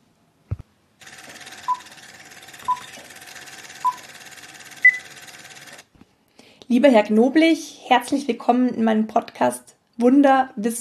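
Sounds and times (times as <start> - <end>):
medical monitoring device beeping: 1.5 - 2.0, 2.6 - 3.0, 3.7 - 4.1, 4.8 - 5.1
speech: 6.7 - 10.8.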